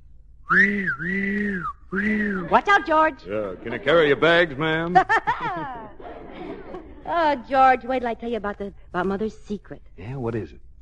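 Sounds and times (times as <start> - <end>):
whistle blowing: 0.5 - 3.0
speech: 0.5 - 6.1, 7.1 - 10.6
laughter: 2.0 - 7.9.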